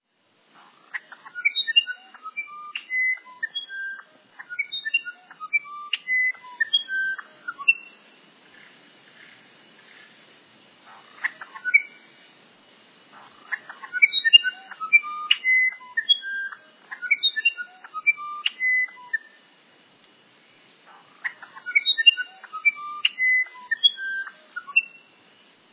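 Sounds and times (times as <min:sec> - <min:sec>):
musician wren song: 0:00.9 - 0:08.0, 0:10.9 - 0:12.1, 0:13.1 - 0:19.4, 0:20.9 - 0:25.2.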